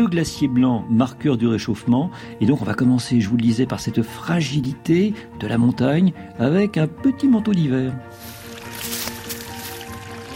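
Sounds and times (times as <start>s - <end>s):
speech: 0.0s - 8.4s
small trickle of mountain water in the Hautes-Alpes: 8.2s - 10.3s.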